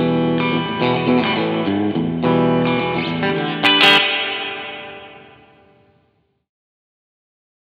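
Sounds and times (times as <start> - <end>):
Surfybear reverb clean sound: 0.1 - 6.2.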